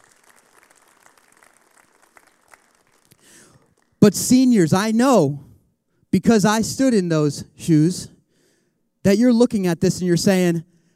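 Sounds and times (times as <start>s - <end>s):
audience clapping for graduating seniors: 0.0s - 4.0s
speech: 4.0s - 5.5s, 6.1s - 8.1s, 9.0s - 10.7s.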